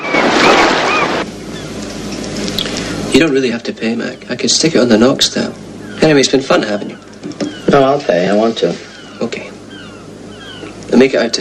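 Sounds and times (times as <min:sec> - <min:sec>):
ocean waves by the sea: 0:00.0 - 0:01.3
speech: 0:03.2 - 0:07.0, 0:07.7 - 0:09.4, 0:10.9 - 0:11.3.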